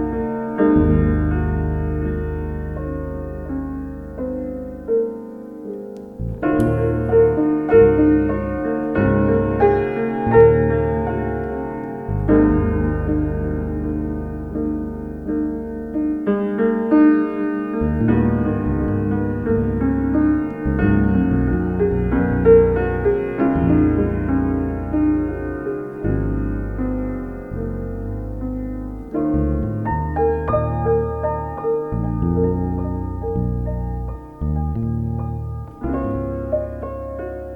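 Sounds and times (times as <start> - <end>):
bass in a duet: 0.0 - 37.5
piano in a duet: 0.0 - 37.5.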